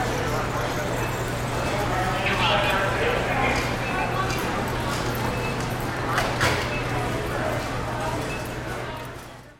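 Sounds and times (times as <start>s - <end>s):
store warehouse ambience: 0.0s - 9.5s.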